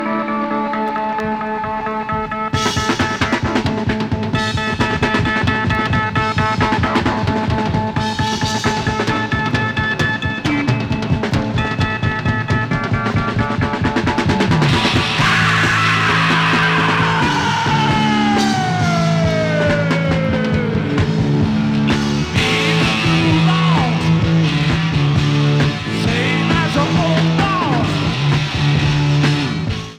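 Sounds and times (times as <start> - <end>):
drum solo: 0.8 - 29.9.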